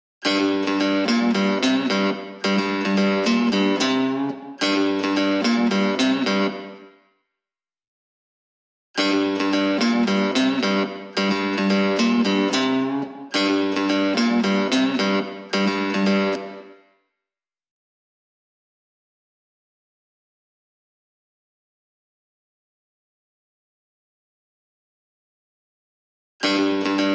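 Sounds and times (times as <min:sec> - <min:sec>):
guitar: 0:00.2 - 0:07.2, 0:09.0 - 0:17.1, 0:26.4 - 0:27.1.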